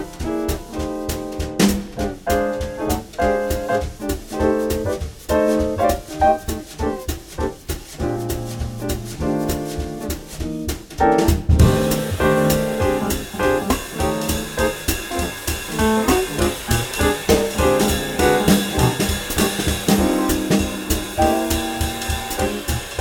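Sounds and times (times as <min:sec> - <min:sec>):
200bpm swing blues in F: 0:00.0 - 0:22.9.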